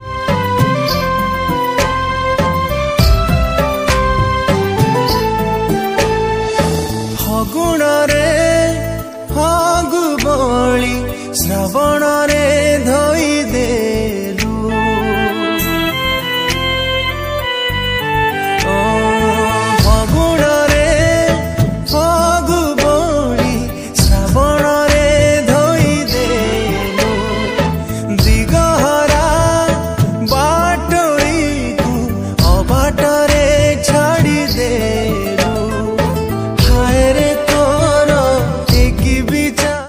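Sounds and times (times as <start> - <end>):
Odia romantic song studio version: 0.0 - 39.8.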